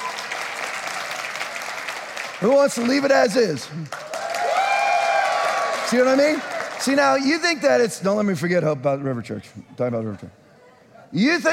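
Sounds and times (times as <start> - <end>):
audience clapping: 0.0 - 7.6
speech: 2.4 - 4.0, 5.9 - 10.4, 11.1 - 11.5.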